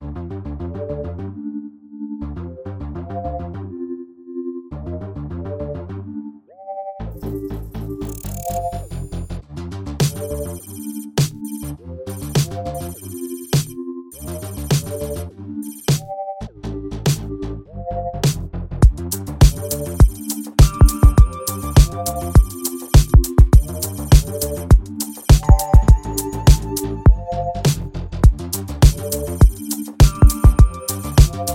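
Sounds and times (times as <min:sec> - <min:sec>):
jingle loop: 0:07.1 - 0:09.3, 0:10.0 - 0:17.1, 0:19.0 - 0:31.5.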